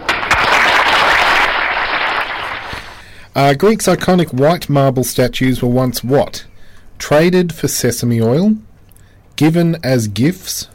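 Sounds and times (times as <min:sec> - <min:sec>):
crowd applause: 0:00.0 - 0:03.0
speech: 0:03.4 - 0:08.7, 0:09.4 - 0:10.7.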